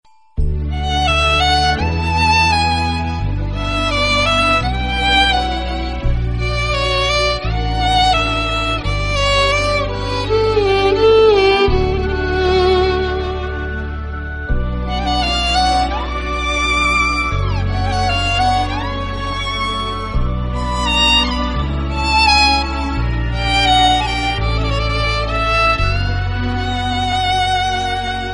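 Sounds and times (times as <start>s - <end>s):
violin: 0.4s - 28.3s.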